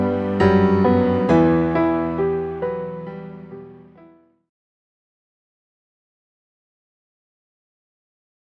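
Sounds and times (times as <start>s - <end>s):
instrumental music: 0.0s - 4.5s.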